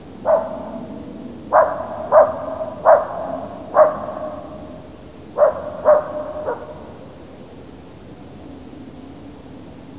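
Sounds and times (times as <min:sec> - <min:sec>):
dog: 0:00.3 - 0:00.8, 0:01.5 - 0:04.6, 0:05.4 - 0:06.9.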